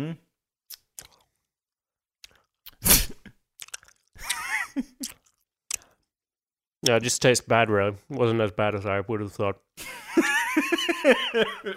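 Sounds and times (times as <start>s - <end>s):
speech: 0.0s - 0.3s, 4.8s - 5.1s, 6.8s - 11.7s
biting and chewing a really chewy food: 0.7s - 1.4s, 2.2s - 2.8s, 3.6s - 4.3s, 4.9s - 6.2s
laughter: 9.8s - 11.7s.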